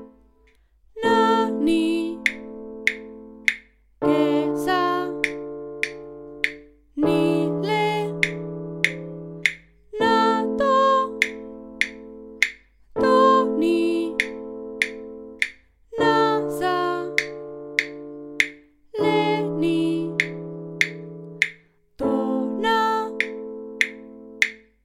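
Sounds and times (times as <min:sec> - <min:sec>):
person singing tonal syllables over A minor chords: 0:01.0 - 0:24.6.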